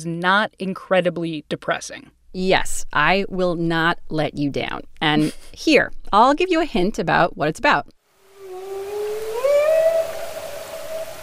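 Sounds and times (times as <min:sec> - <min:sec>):
speech: 0:00.0 - 0:08.0
underwater hiss: 0:08.2 - 0:11.2
humpback whale moaning: 0:08.3 - 0:11.2.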